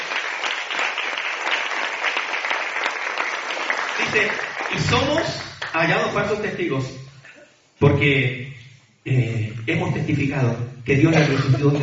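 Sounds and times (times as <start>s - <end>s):
audience applause: 0.0s - 5.7s
speech: 4.1s - 7.1s, 7.8s - 11.8s
laughter: 11.0s - 11.8s.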